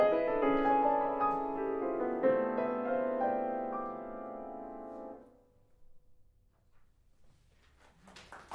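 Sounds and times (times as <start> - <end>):
piano suite postlude: 0.0 - 6.0.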